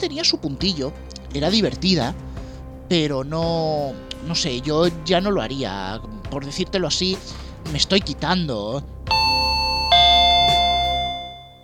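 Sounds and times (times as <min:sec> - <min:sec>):
speech: 0:00.0 - 0:02.2, 0:02.9 - 0:09.0
doorbell ringing two-tone ding-dong: 0:09.1 - 0:11.6.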